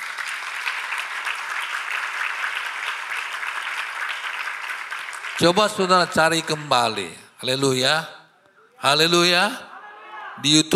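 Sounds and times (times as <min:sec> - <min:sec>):
audience applause: 0:00.0 - 0:06.9
speech: 0:05.4 - 0:08.2, 0:08.8 - 0:09.7, 0:10.4 - 0:10.7.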